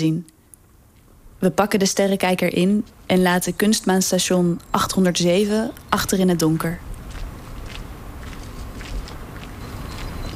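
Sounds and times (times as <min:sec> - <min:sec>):
speech: 0:00.0 - 0:00.3, 0:01.4 - 0:06.9
footsteps along the Singel canal in Utrecht: 0:06.4 - 0:10.3.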